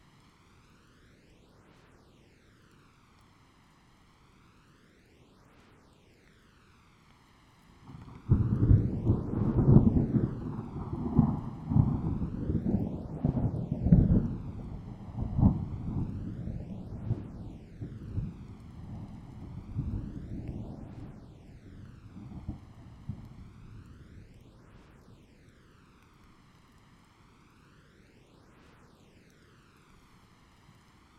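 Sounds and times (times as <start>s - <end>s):
thunderstorm crack and long roll of thunder: 7.8s - 24.3s.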